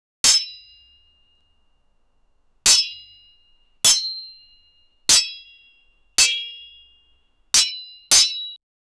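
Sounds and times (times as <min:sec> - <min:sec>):
two swords clashing: 0:00.2 - 0:01.0, 0:02.6 - 0:08.5.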